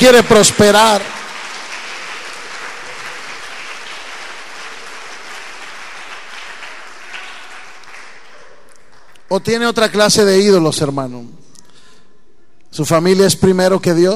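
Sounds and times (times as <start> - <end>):
speech: 0.0 - 1.2, 9.3 - 11.4, 12.7 - 14.1
audience applause: 0.0 - 9.2.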